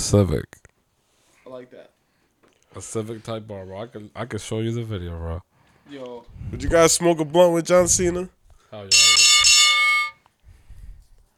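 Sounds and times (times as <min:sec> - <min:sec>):
speech: 0:00.1 - 0:00.6, 0:01.5 - 0:01.9, 0:02.8 - 0:09.2
bell sound effect: 0:08.9 - 0:10.2.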